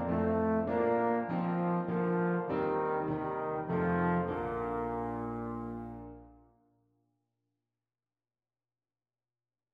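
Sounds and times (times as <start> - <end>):
trombone duet playing a Christmas carol: 0.0 - 6.4.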